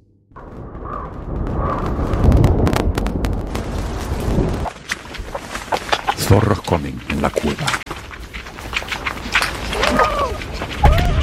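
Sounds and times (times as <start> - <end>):
distant thunder: 0.3 - 4.8
rain: 1.1 - 11.2
speech: 6.3 - 7.8.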